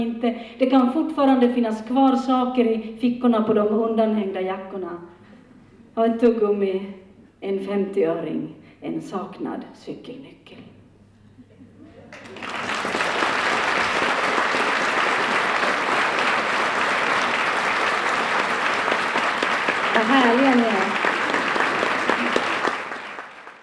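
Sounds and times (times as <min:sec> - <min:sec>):
speech: 0:00.0 - 0:05.1, 0:06.0 - 0:10.7
audience applause calling for an encore: 0:12.1 - 0:23.6.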